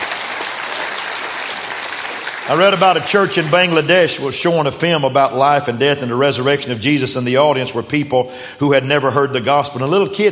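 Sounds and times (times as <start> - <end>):
audience applause: 0.0 - 4.2
speech: 2.4 - 10.3.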